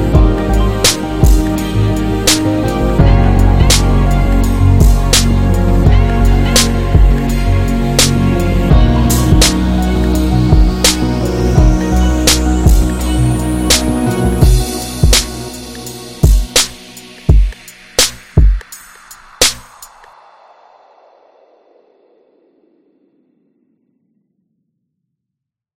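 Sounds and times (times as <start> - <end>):
chillhop music: 0.0 - 20.1.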